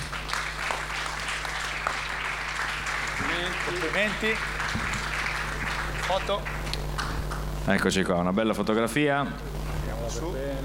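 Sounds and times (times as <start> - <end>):
audience applause: 0.0 - 7.5
speech: 3.2 - 4.8, 6.1 - 6.6, 7.7 - 9.5, 10.1 - 10.6.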